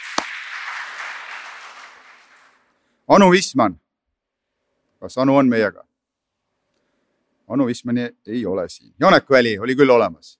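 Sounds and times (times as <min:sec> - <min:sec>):
applause for a guest welcomed into a gathering: 0:00.0 - 0:02.8
speech: 0:03.1 - 0:03.8, 0:05.0 - 0:05.9, 0:07.5 - 0:10.3.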